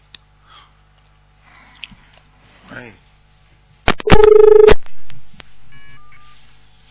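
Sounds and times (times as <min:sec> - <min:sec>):
speech: 0:02.8 - 0:03.1, 0:04.2 - 0:04.9
harsh electronic telephone line buzzing tone with clicks: 0:04.0 - 0:04.8
faint beeps from an off-hook phone line: 0:04.1 - 0:04.8.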